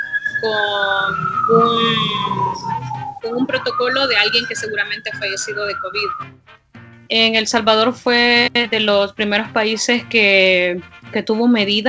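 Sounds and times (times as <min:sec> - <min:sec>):
police patrol car siren passing: 0:00.0 - 0:06.3
speech: 0:00.4 - 0:02.4, 0:03.2 - 0:11.8.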